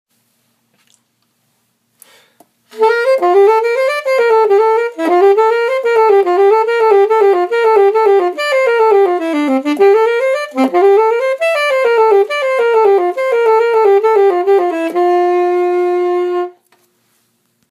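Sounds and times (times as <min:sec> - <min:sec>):
alto saxophone: 0:02.7 - 0:16.7.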